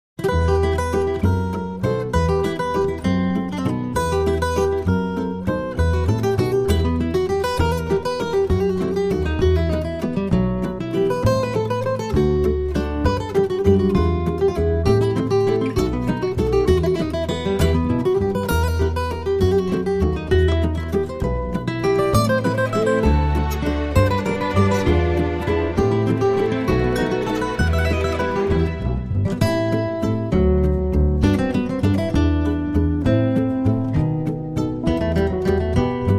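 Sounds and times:
waltz music: 0.4 - 36.1.

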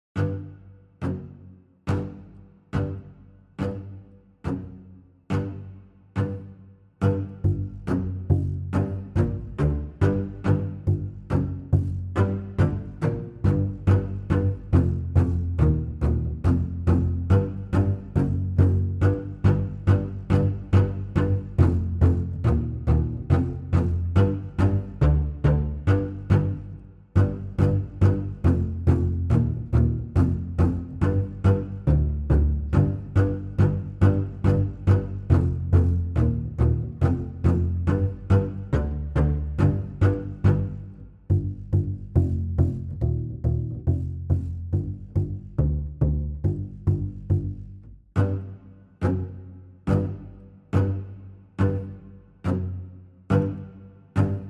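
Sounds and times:
strings: 0.2 - 54.4.

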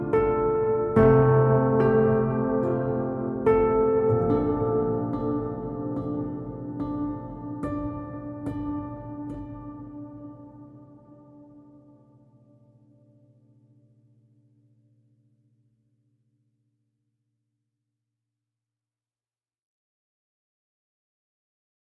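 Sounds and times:
solo piano: 0.0 - 13.8.

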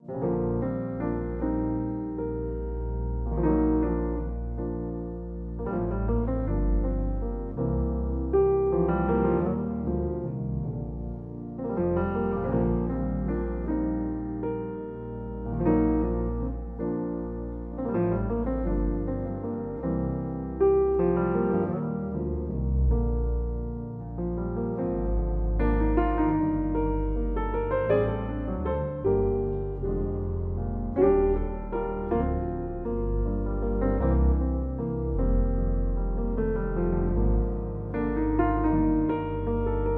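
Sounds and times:
solo piano: 0.0 - 39.9.

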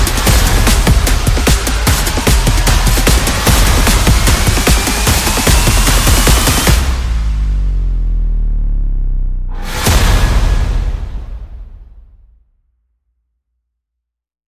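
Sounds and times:
percussion: 0.0 - 8.5, 9.5 - 12.4
bass: 0.0 - 12.4.

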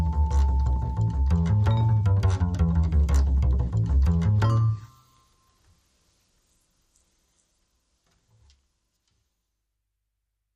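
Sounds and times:
swing music: 0.0 - 5.0.

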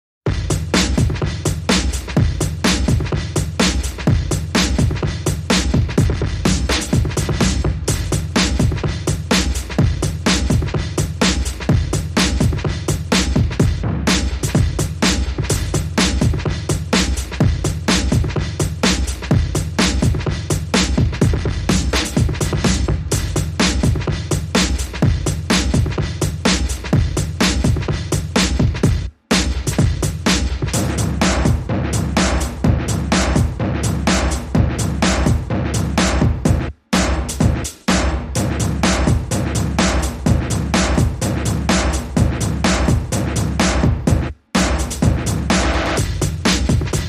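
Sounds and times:
drums: 0.2 - 47.0.

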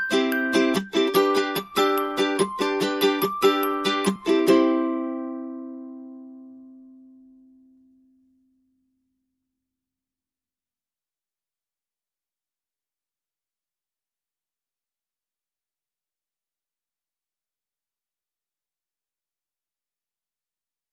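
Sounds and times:
glockenspiel: 0.0 - 5.8
ukulele: 0.0 - 8.1.

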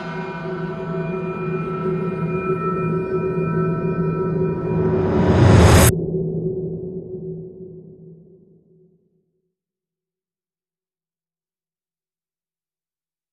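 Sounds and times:
synth pads: 0.0 - 6.1.

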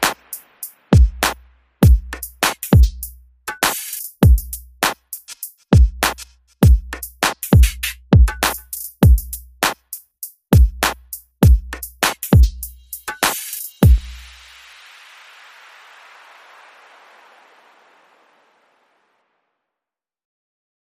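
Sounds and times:
drums: 0.0 - 16.0
bass: 0.9 - 3.6, 4.2 - 5.0, 5.8 - 9.9, 10.5 - 14.4.

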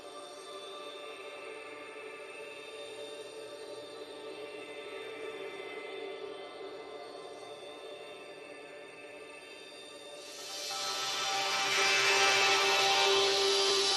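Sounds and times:
drone: 10.2 - 13.9.

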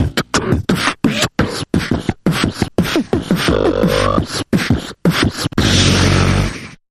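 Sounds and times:
comic mouth percussion: 0.0 - 6.8.

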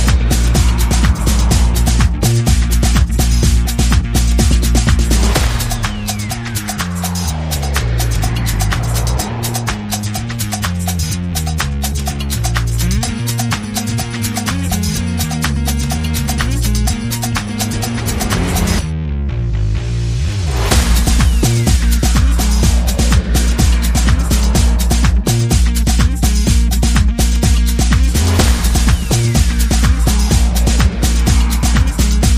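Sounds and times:
sound effects: 0.0 - 3.7, 5.0 - 10.9, 20.0 - 26.6, 28.0 - 32.3
percussion groove: 0.0 - 18.8, 20.6 - 32.3
bass: 0.0 - 32.3.

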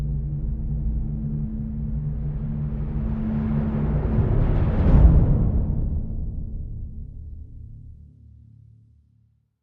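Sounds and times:
orchestral crescendo without snare drums: 0.1 - 7.6.

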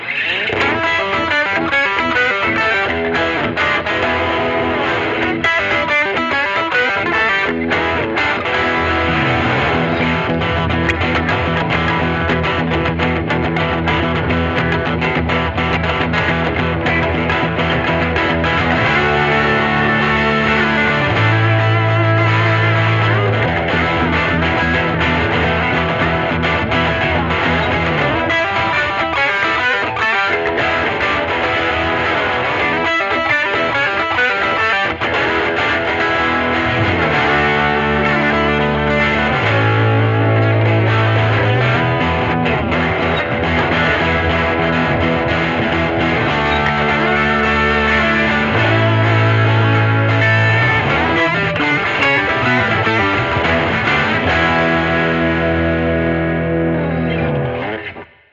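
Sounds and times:
instrumental music without drums: 0.0 - 58.3.

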